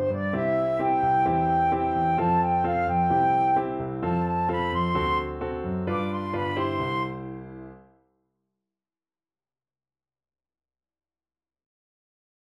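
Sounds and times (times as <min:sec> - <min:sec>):
backing track in C major: 0:00.1 - 0:07.2.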